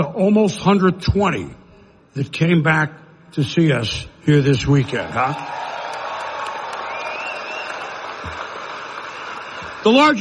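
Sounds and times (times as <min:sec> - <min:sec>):
speech: 0:00.0 - 0:05.7, 0:09.8 - 0:10.2
crowd cheering and applauding: 0:05.2 - 0:10.2
whoops from the crowd: 0:05.4 - 0:09.8.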